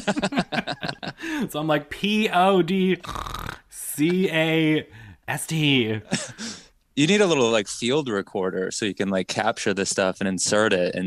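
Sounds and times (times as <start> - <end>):
laughter: 0.0 - 1.3
speech: 0.0 - 3.3, 4.0 - 6.4, 7.0 - 11.0
voice imitating snoring: 3.0 - 3.7.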